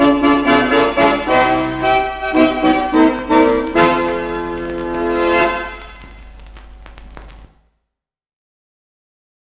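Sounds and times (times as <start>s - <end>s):
accordion music: 0.0s - 6.2s.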